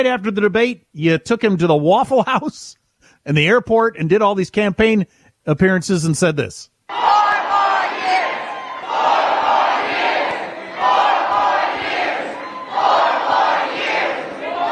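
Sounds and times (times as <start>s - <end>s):
speech: 0.0s - 7.2s
large crowd chanting: 6.9s - 14.7s.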